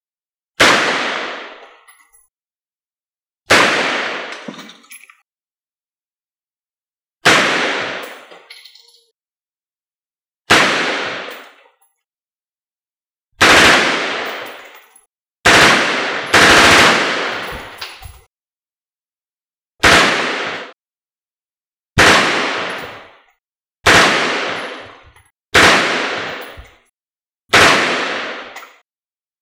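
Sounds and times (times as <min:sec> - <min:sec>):
real M16 rifle shot: 0:00.6 - 0:01.6, 0:03.5 - 0:04.5, 0:07.2 - 0:08.2, 0:10.5 - 0:11.4, 0:13.4 - 0:14.6, 0:15.5 - 0:17.8, 0:19.8 - 0:20.8, 0:22.0 - 0:23.0, 0:23.9 - 0:25.0, 0:25.6 - 0:26.7, 0:27.5 - 0:28.6.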